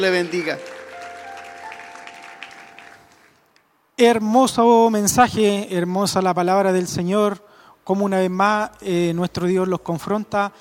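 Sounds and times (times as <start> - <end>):
speech: 0.0 - 0.8, 4.0 - 10.6
audience applause in a large room: 0.0 - 3.5.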